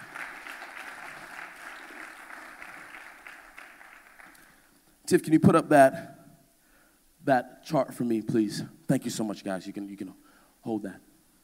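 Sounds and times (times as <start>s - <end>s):
audience clapping: 0.0s - 4.7s
speech: 5.1s - 6.2s, 7.2s - 11.1s.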